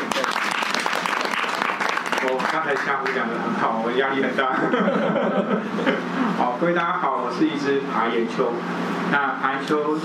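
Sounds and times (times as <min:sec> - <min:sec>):
audience applause: 0:00.0 - 0:03.2
speech: 0:02.3 - 0:10.0
laughter: 0:04.4 - 0:06.4.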